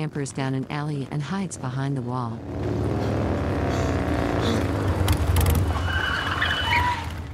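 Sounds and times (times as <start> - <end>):
speech: 0.0 - 3.4
motorbikes pulling up around a corner: 0.0 - 7.3.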